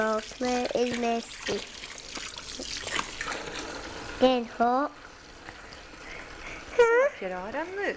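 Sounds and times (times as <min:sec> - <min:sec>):
speech: 0:00.0 - 0:02.3, 0:04.2 - 0:05.0, 0:06.8 - 0:07.9
running tap water as hands are washed clean of chocolate: 0:00.0 - 0:07.9.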